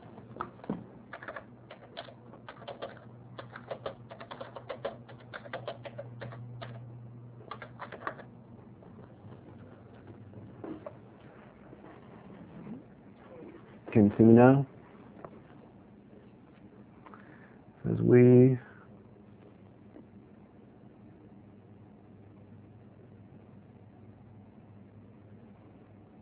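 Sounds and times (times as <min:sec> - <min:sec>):
steady low hum: 0:00.0 - 0:25.9
typing on a keyboard: 0:00.4 - 0:06.8, 0:07.5 - 0:08.3
speech: 0:14.0 - 0:14.7.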